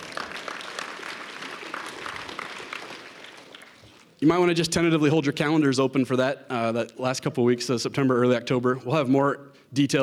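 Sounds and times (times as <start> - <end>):
audience applause: 0.0 - 4.2
speech: 4.2 - 10.0.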